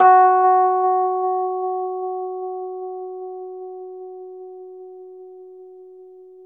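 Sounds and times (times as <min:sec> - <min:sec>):
Rhodes 73 electric piano F# note: 0:00.0 - 0:03.4.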